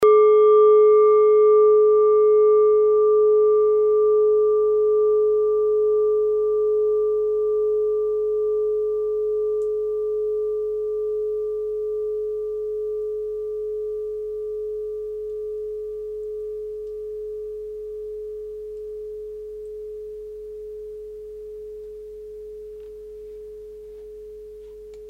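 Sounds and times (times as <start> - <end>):
klangschale singing bowl from Nepal: 0.0 - 25.0.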